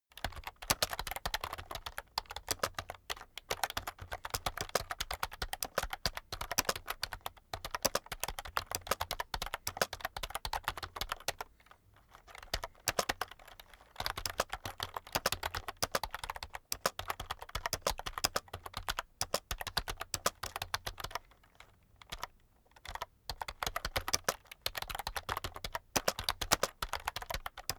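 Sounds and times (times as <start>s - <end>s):
heavy computer keyboard typing sequence: 0.2s - 11.5s, 12.1s - 21.2s, 22.0s - 27.7s.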